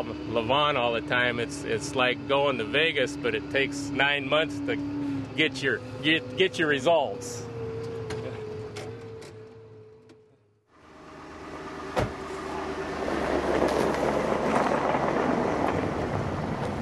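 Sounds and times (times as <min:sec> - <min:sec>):
speech: 0:00.0 - 0:07.5
low road rumble of a car driving: 0:00.0 - 0:16.7.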